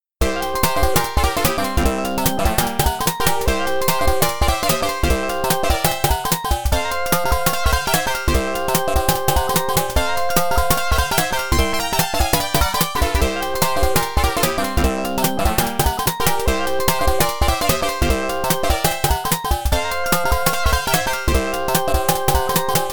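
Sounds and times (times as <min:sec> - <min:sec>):
faster background music: 0:00.2 - 0:22.9.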